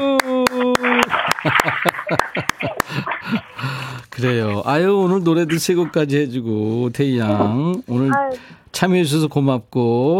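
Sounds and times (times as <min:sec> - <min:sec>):
applause, hands clapping: 0:00.0 - 0:03.4
laughter: 0:00.3 - 0:06.2
speech: 0:01.4 - 0:02.0, 0:04.2 - 0:10.1.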